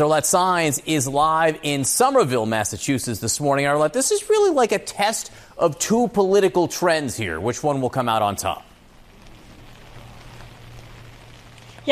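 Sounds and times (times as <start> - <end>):
speech: 0.0 - 8.7
rain falling outdoors in Somerville, Massachusetts: 0.0 - 11.9
low hum: 8.7 - 11.9.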